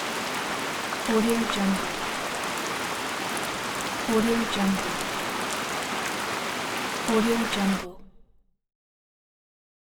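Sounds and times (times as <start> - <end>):
light tropical rain on ground: 0.0 - 7.9.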